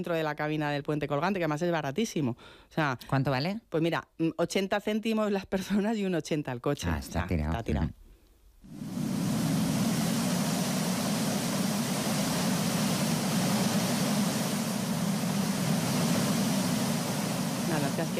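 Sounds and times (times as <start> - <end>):
speech: 0.0 - 8.0, 18.0 - 18.1
sea waves: 8.6 - 18.1.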